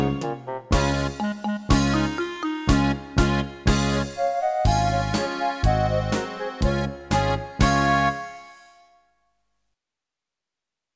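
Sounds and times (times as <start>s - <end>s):
karaoke singing: 0.0s - 8.4s.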